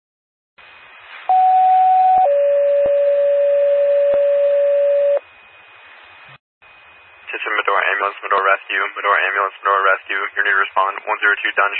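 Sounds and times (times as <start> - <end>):
two-tone emergency dispatch pager alert: 1.3 - 5.2
faint radio hiss: 5.4 - 11.7
speech: 8.0 - 11.7.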